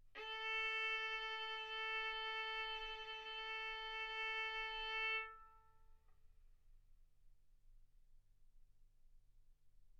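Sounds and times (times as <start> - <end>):
violin arco on A string: 0.2 - 5.5.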